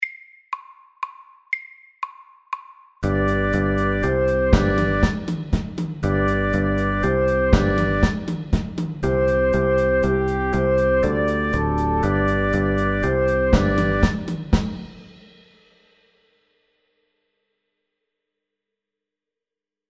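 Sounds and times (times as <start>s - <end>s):
fusion music: 3.0s - 14.8s.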